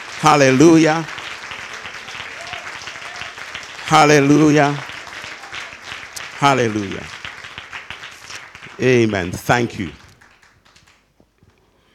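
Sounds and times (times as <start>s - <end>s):
church congregation clapping hands in praise: 0.0s - 11.5s
speech: 0.2s - 1.2s, 3.9s - 4.9s, 6.4s - 7.2s, 8.8s - 10.0s
voices from the congregation: 0.4s - 7.2s.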